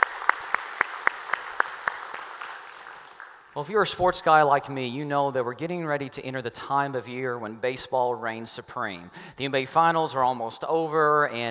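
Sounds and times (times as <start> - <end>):
church congregation clapping in unison: 0.0 - 3.6
speech: 3.6 - 11.4.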